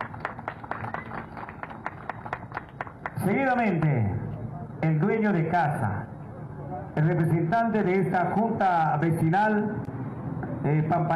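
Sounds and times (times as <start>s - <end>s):
audience applause: 0.0s - 3.2s
speech: 3.2s - 4.2s, 4.8s - 6.1s, 6.9s - 9.9s, 10.6s - 11.1s.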